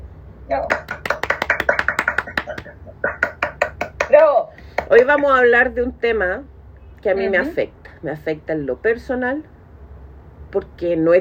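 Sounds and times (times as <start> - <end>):
speech: 0.5 - 0.8, 4.9 - 9.5, 10.5 - 11.1
applause: 0.6 - 5.3.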